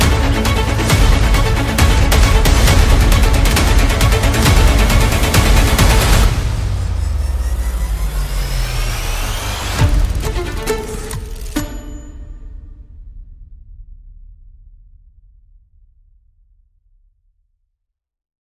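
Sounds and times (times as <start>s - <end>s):
strings: 0.0s - 13.0s
percussion: 0.0s - 16.0s
sound effects: 0.2s - 13.0s.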